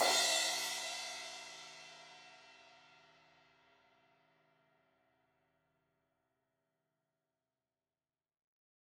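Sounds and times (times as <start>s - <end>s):
16-inch crash cymbal hit on the edge: 0.0s - 1.7s.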